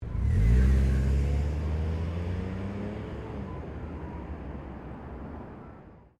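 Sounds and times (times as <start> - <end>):
Toyota Corolla hatchback driving off: 0.0 - 6.0.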